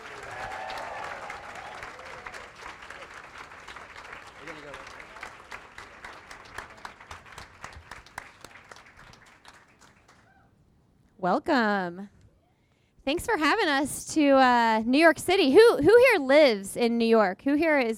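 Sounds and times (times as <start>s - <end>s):
live audience applause: 0.0s - 10.4s
speech: 11.2s - 12.2s, 13.0s - 17.9s.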